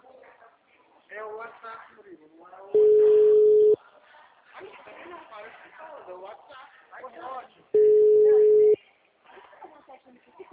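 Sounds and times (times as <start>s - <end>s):
speech: 1.2s - 3.6s, 4.6s - 8.4s
ringback tone of an outgoing telephone call: 2.8s - 3.8s, 7.8s - 8.8s.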